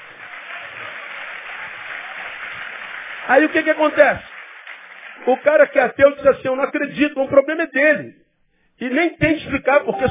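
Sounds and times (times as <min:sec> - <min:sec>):
audience applause: 0:00.0 - 0:05.9
speech: 0:03.3 - 0:04.3, 0:05.2 - 0:08.2, 0:08.8 - 0:10.0.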